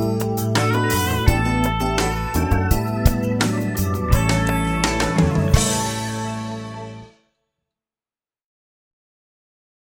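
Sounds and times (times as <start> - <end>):
strings in D major: 0.0 - 7.2.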